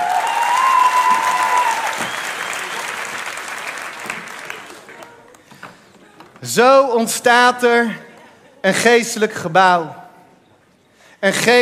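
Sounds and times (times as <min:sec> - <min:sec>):
audience applause: 0:00.0 - 0:05.4
speech: 0:06.6 - 0:10.0, 0:11.2 - 0:11.6.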